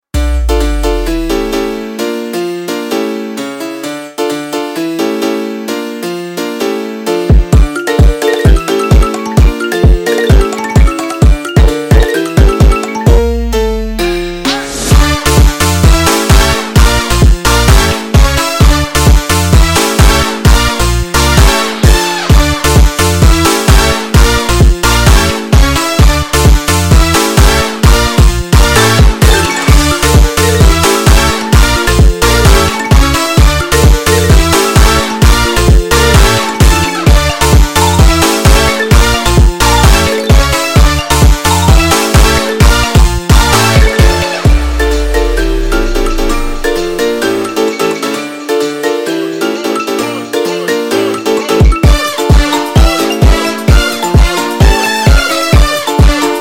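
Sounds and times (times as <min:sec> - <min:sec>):
instrumental music: 0:00.1 - 0:56.3.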